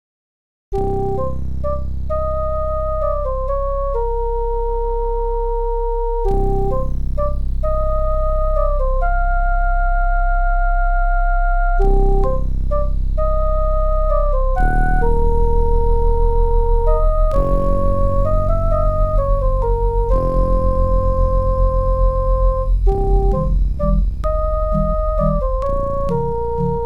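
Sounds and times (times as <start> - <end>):
OPL3 FM synthesizer music: 0.8 - 26.8.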